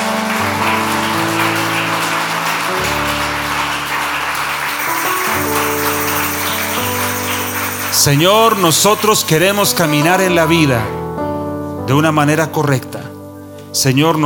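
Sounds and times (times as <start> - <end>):
audience applause: 0.0 - 10.4
speech: 8.0 - 11.0, 11.9 - 13.0, 13.7 - 14.2.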